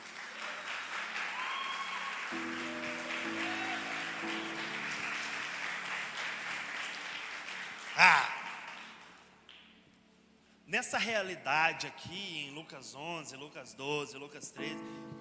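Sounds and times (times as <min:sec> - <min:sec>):
crowd applauding loudly: 0:00.0 - 0:09.3
sustained keyboard chord: 0:02.3 - 0:07.4
speech: 0:10.8 - 0:15.1.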